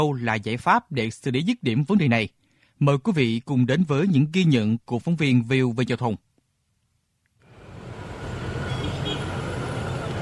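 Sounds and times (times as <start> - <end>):
speech: 0.0 - 6.3
busy highway traffic: 7.4 - 10.1.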